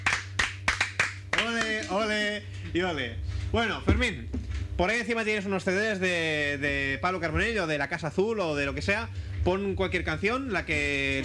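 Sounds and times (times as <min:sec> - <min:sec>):
handclaps from a small group in a Spanish radio studio: 0:00.0 - 0:02.0
speech: 0:01.9 - 0:11.2.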